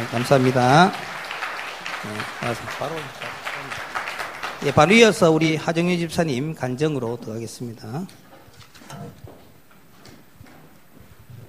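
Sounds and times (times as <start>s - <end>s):
audience applause: 0.0s - 5.9s
speech: 0.1s - 1.1s, 2.0s - 3.4s, 4.6s - 8.2s.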